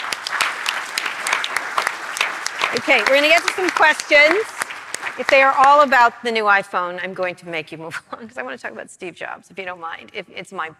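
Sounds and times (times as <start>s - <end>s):
crowd applauding: 0.0s - 6.4s
speech: 2.7s - 4.6s, 5.2s - 10.7s.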